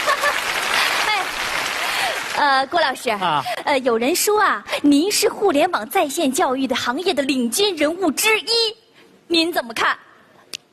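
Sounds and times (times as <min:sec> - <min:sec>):
audience applause welcoming a guest: 0:00.0 - 0:02.7
speech: 0:02.4 - 0:10.1.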